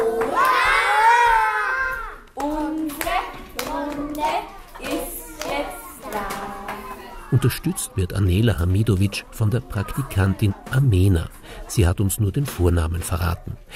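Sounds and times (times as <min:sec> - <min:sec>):
children clapping loudly in rhythm: 0:00.0 - 0:00.7, 0:02.3 - 0:07.0
long drawn-out shout: 0:00.0 - 0:02.2
children chanting and singing: 0:00.0 - 0:13.7
speech: 0:07.3 - 0:13.7.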